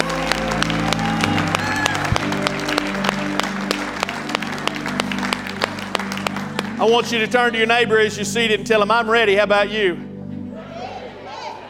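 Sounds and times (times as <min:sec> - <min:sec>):
audience hand clapping: 0:00.0 - 0:07.6
speech: 0:06.8 - 0:10.1.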